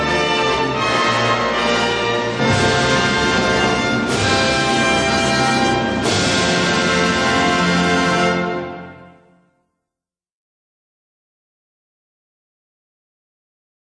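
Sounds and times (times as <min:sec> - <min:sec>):
symphony orchestra playing a state anthem: 0:00.0 - 0:09.4.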